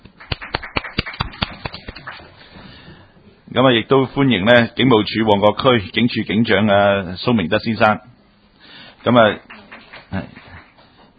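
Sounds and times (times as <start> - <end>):
meeting attendees applauding: 0.0 - 2.6, 9.0 - 11.1
speech: 3.6 - 8.1, 9.0 - 9.5, 10.1 - 10.4.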